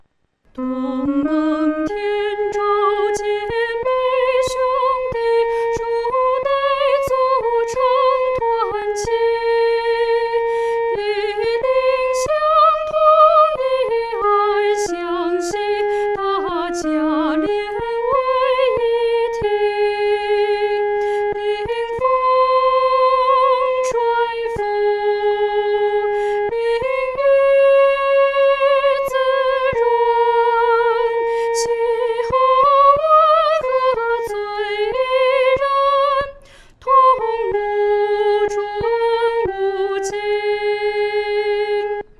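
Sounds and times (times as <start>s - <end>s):
solo singing: 0.5s - 42.1s.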